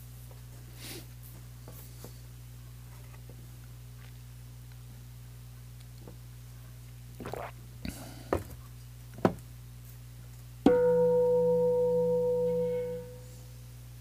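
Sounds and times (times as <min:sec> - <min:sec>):
low steady hum: 0:00.0 - 0:14.0
meditation bell ringing: 0:10.7 - 0:13.4.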